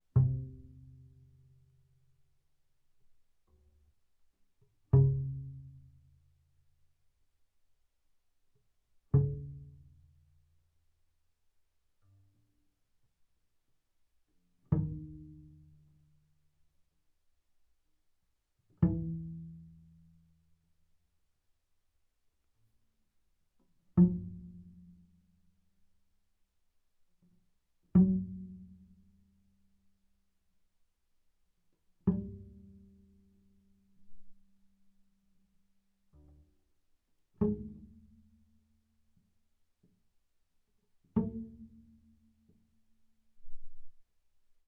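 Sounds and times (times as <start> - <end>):
double bass pizzicato on the A string: 0.0 - 2.1, 4.7 - 6.5, 9.1 - 10.6, 14.6 - 16.4, 18.7 - 20.5, 23.9 - 25.5, 27.9 - 29.6, 32.0 - 34.8, 36.0 - 36.7, 37.3 - 39.2, 41.0 - 44.0.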